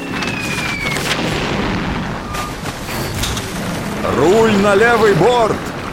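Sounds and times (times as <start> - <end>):
naval cannon fire during sea battle: 0.3 - 5.9
speech: 4.2 - 5.7.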